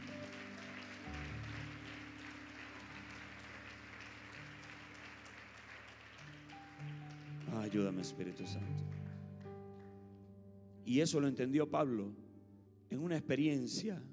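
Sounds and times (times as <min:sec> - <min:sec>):
audience applause: 0:00.0 - 0:09.9
speech: 0:07.7 - 0:09.0, 0:10.9 - 0:12.2, 0:12.9 - 0:14.1.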